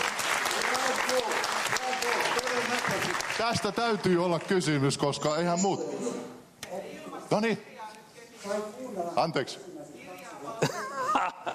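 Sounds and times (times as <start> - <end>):
audience applause: 0.0 - 4.8
speech: 3.4 - 6.3, 7.3 - 7.7, 8.4 - 9.7
laughter: 10.6 - 11.5.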